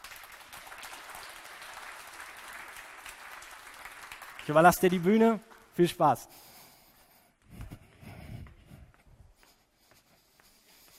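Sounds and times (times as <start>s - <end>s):
audience applause: 0.0s - 6.0s
speech: 4.5s - 6.5s.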